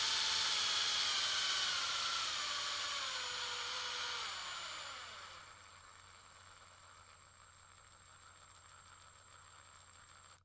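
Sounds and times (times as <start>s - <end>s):
medium drill accelerating: 0.0s - 5.7s.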